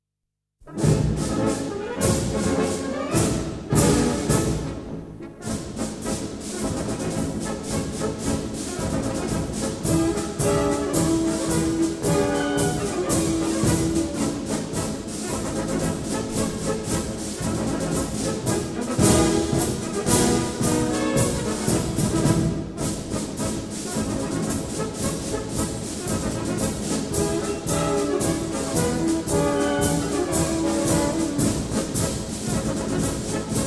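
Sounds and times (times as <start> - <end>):
military march: 0.6 - 33.6.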